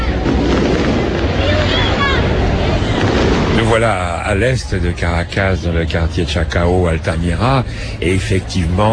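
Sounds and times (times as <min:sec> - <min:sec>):
fireworks going off: 0:00.1 - 0:04.8
speech: 0:03.8 - 0:08.9.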